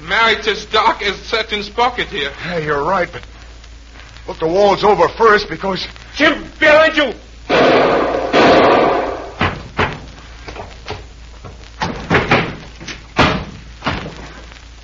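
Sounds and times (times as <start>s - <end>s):
speech: 0.2s - 3.4s, 4.2s - 8.2s
body tumbling down a flight of stairs, radio drama effect: 8.4s - 14.4s.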